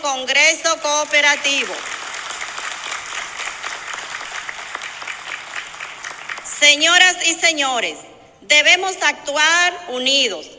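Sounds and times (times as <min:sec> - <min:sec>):
speech: 0:00.0 - 0:02.0, 0:06.6 - 0:10.5
loud audience applause: 0:01.3 - 0:06.5.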